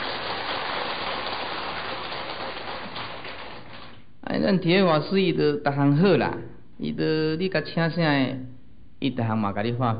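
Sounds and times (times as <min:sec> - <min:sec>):
audience applause: 0:00.0 - 0:04.0
speech: 0:04.4 - 0:09.9.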